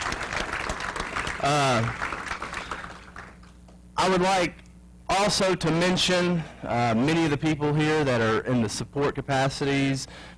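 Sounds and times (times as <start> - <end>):
audience applause: 0.0 - 3.5
speech: 1.4 - 2.0, 4.0 - 10.3.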